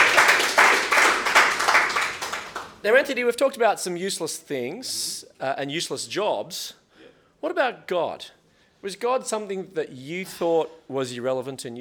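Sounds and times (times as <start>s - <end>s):
round of applause: 0.0s - 2.8s
speech: 2.8s - 6.8s, 7.4s - 11.8s.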